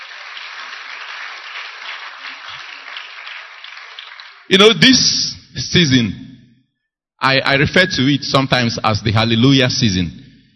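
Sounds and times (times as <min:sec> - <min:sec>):
audience clapping: 0:00.0 - 0:04.9
speech: 0:04.5 - 0:06.2, 0:07.2 - 0:10.2.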